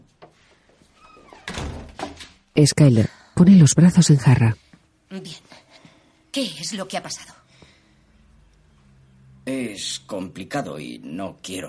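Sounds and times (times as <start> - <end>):
door being closed: 1.0 - 2.4
speech: 2.6 - 5.4, 6.4 - 7.4, 9.8 - 11.6.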